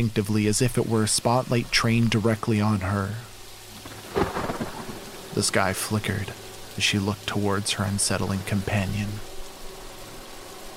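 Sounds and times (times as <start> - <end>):
speech: 0.0 - 3.3, 5.4 - 9.3
steady rainfall: 0.0 - 10.7
thunder clap during a rainstorm: 3.7 - 6.7.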